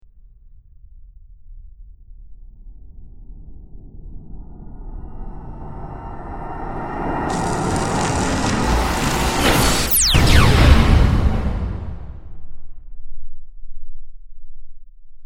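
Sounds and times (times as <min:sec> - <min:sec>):
warp sound: 0:07.3 - 0:12.3.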